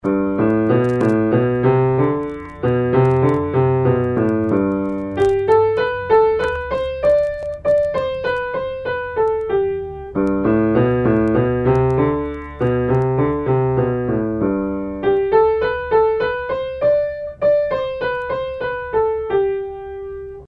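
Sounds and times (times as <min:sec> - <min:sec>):
piano playing: 0:00.0 - 0:20.4.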